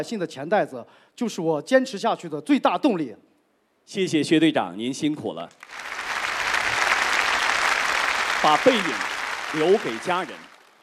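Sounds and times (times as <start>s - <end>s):
speech: 0.0s - 3.3s, 3.9s - 6.0s, 8.4s - 10.5s
audience applause honouring an economic crime police officer at a ceremony: 5.6s - 10.8s.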